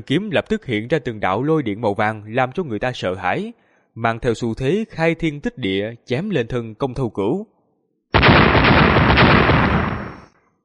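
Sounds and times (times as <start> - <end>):
speech: 0.0 - 7.5
three simultaneous explosions: 8.2 - 10.4.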